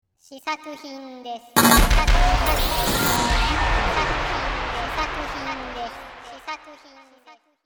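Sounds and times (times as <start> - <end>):
sound effect: 1.6 - 6.9.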